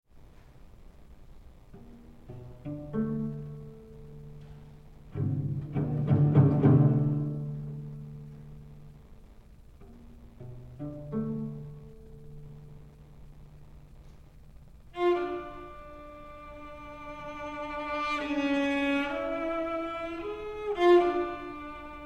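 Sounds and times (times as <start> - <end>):
solo cello: 1.7 - 9.0, 9.8 - 12.8, 14.8 - 22.0.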